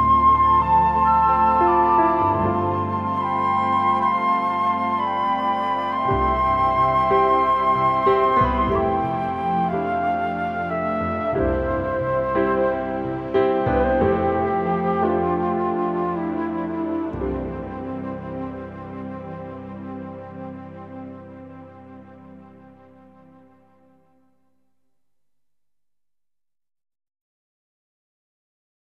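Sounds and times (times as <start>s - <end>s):
acoustic praise instrumental music: 0.0s - 20.0s.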